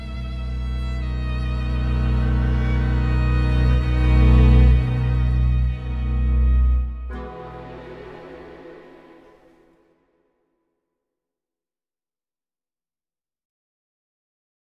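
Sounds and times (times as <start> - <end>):
lush strings: 0.0 - 10.2.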